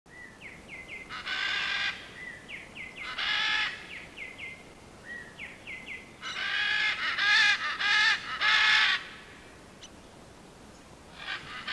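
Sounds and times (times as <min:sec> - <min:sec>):
great green macaw giving harsh raspy squawks to attract other parrots: 0:01.1 - 0:02.1, 0:03.0 - 0:03.8, 0:06.2 - 0:09.2, 0:11.2 - 0:11.7.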